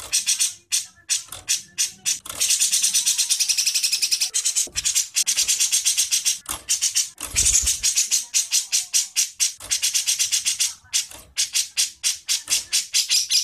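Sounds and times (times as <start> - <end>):
songbird training song with whistles, buzzy phrase and high trill: 0.0 - 13.4.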